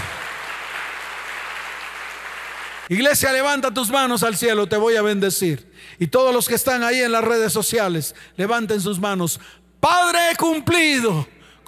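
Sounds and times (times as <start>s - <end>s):
audience applause: 0.0s - 2.9s
speech: 2.9s - 11.4s.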